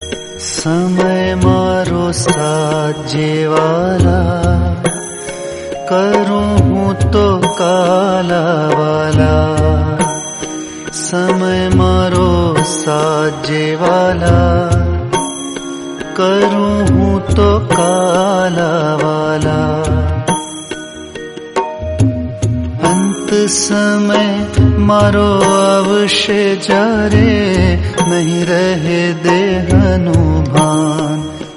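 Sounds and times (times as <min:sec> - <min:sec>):
Gujarati bhajan singing: 0:00.0 - 0:31.5.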